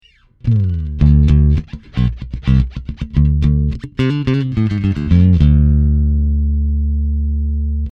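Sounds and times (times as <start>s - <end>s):
Markbass MB58R CMD 102 electric bass played with a pick through DI: 0.1s - 7.9s.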